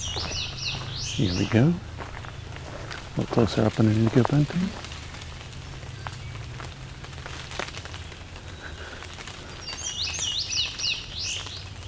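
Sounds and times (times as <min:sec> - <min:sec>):
bird singing: 0:00.0 - 0:04.9, 0:05.5 - 0:06.9, 0:07.9 - 0:11.8
low wind rumble: 0:00.0 - 0:11.8
speech: 0:01.2 - 0:01.9, 0:03.2 - 0:04.8
water drops blown off trees: 0:02.9 - 0:11.8.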